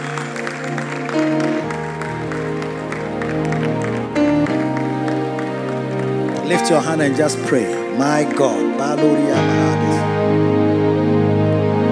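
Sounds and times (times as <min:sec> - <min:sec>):
audience clapping hands: 0:00.0 - 0:08.8
keyboard music: 0:00.0 - 0:11.9
speech: 0:06.5 - 0:10.1.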